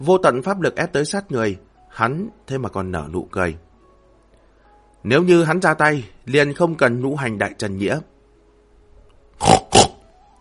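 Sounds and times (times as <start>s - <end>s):
speech: 0.0s - 3.6s, 5.0s - 8.1s, 9.4s - 9.6s
pig squealing: 9.4s - 10.0s.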